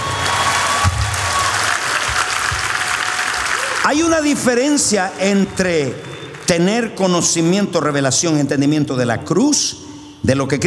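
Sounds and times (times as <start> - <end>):
audience applause: 0.0 - 7.5
speech: 3.8 - 10.6.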